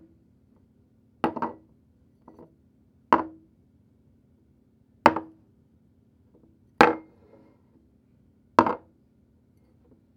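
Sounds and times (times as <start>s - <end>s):
ceramic placed on wood surface: 1.3s - 1.6s, 8.6s - 8.9s.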